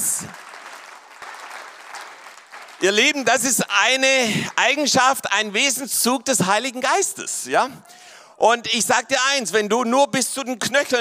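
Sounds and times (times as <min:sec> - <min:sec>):
crowd applause: 0:00.0 - 0:03.6
speech: 0:00.2 - 0:00.4, 0:02.8 - 0:10.9.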